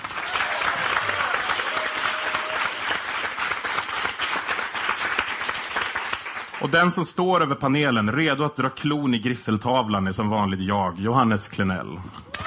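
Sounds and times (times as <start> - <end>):
audience applause: 0.0 - 6.9
speech: 6.6 - 12.3.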